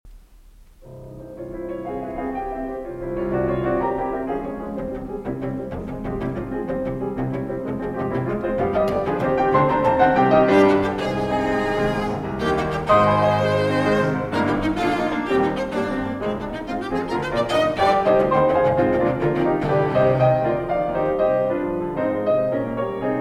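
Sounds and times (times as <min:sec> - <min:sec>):
cello sonata played live: 0:00.6 - 0:23.1.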